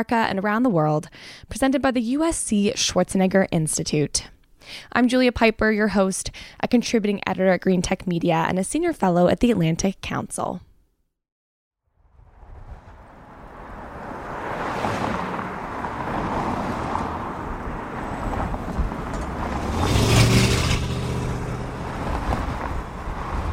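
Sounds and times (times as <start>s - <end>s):
speech: 0.0s - 10.7s
louder vehicle surging by on Lincoln Boulevard: 12.0s - 23.5s
traffic on Lincoln Boulevard in Los Angeles: 12.0s - 23.5s.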